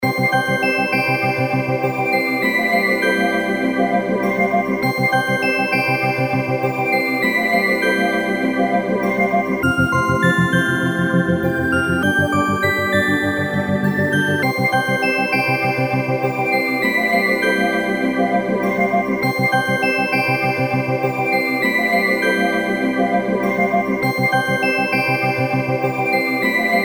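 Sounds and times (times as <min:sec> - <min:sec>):
background music: 0:00.0 - 0:26.8.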